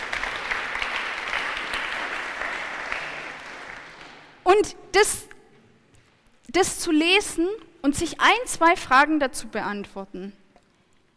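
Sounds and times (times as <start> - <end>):
audience applause: 0.0 - 4.4
speech: 4.6 - 5.3, 6.6 - 10.4.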